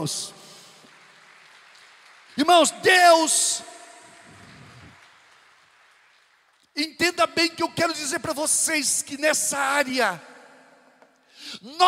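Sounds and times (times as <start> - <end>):
speech: 0.0 - 0.4, 2.4 - 3.8, 6.8 - 10.3, 11.6 - 11.8
audience applauding: 0.0 - 6.8.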